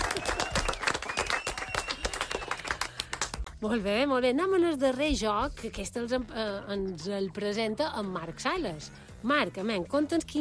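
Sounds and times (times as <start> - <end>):
loud applause: 0.0 - 3.4
speech: 3.6 - 10.4.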